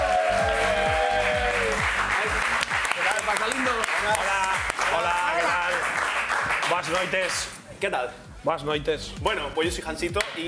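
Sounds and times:
audience applause: 0.0 - 7.4
speech: 6.8 - 10.4.

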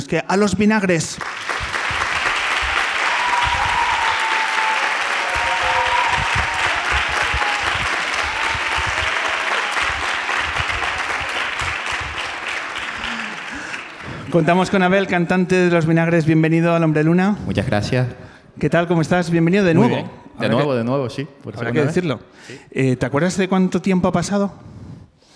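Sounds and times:
speech: 0.1 - 1.7, 14.3 - 24.8
large audience applause: 1.2 - 15.0
whoops and cheers: 2.6 - 13.8.

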